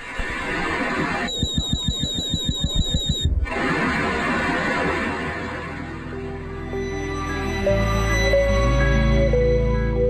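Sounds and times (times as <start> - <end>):
external sonar rapid pulses: 0.0 - 6.5
external sonar sustained electronic tones: 1.0 - 10.0.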